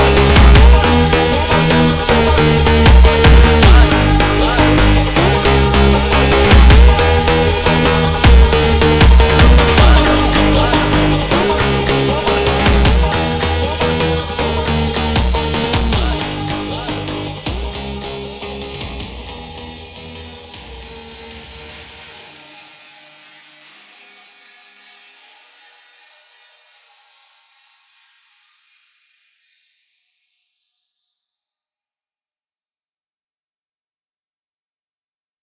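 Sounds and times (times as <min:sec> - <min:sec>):
sped-up funk music: 0:00.0 - 0:21.6.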